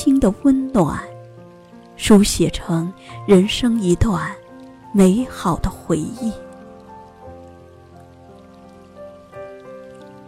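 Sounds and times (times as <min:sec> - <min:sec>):
speech: 0:00.0 - 0:01.1, 0:02.0 - 0:06.4
rain falling: 0:00.0 - 0:10.2.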